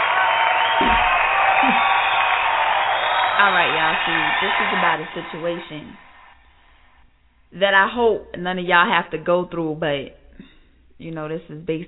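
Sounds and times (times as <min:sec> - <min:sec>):
audience applause and cheering: 0:00.0 - 0:06.4
speech: 0:03.4 - 0:06.1, 0:07.5 - 0:11.8.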